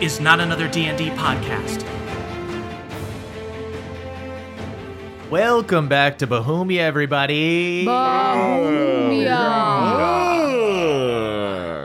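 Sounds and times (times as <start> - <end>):
speech: 0.0 - 2.0, 5.3 - 11.5
yawning: 7.9 - 11.8.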